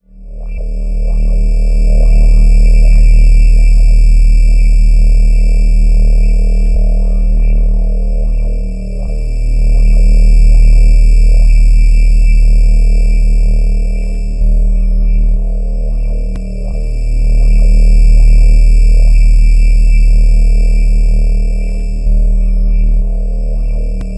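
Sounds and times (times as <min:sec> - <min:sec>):
sci-fi ambience: 0:00.0 - 0:24.1.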